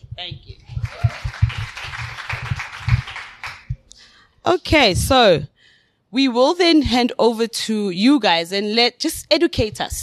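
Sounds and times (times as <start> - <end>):
audience applause: 0.8 - 3.8
speech: 4.5 - 5.5, 6.1 - 10.0.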